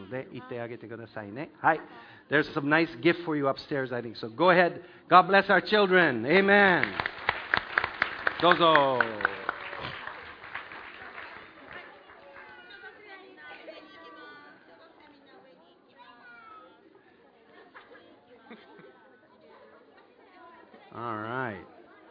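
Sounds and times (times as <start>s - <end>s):
speech: 0.1s - 7.2s, 8.4s - 9.4s
audience clapping: 6.4s - 12.8s.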